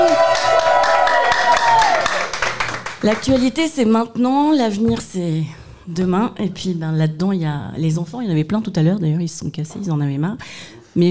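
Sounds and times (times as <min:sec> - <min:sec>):
studio audience clapping and cheering at a French evening talk show: 0:00.0 - 0:03.6
speech: 0:03.0 - 0:11.0.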